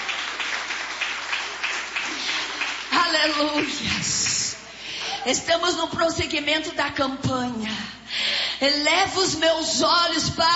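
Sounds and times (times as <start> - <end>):
audience clapping: 0.0 - 5.2
speech: 5.2 - 10.5.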